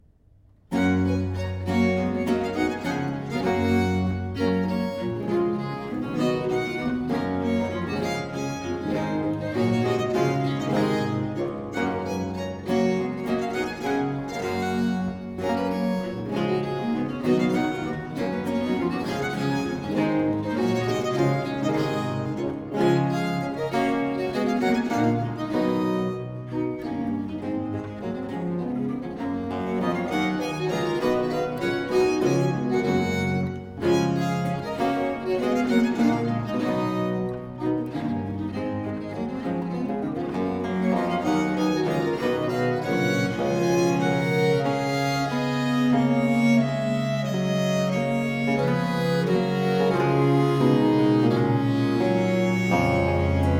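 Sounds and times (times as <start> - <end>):
viols playing suite in G major: 0.7 - 53.5.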